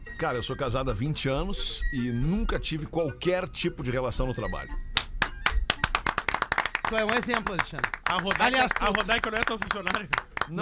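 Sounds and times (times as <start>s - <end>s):
speech: 0.1s - 4.9s, 6.9s - 10.6s
hand clapping: 4.9s - 10.6s.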